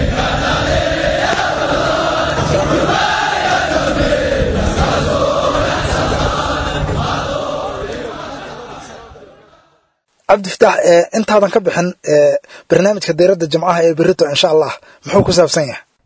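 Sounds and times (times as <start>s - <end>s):
Gorgor soldiers shouting and threatening during NATO training: 0.0s - 9.8s
speech: 10.3s - 15.9s.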